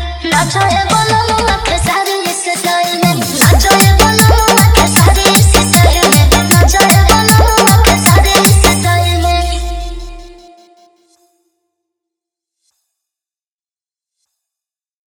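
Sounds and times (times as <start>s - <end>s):
Bhojpuri remix song: 0.0s - 10.4s.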